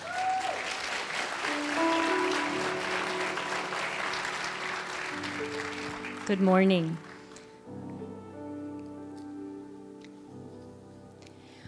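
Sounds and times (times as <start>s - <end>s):
audience applause: 0.0s - 7.7s
speech: 6.3s - 7.1s.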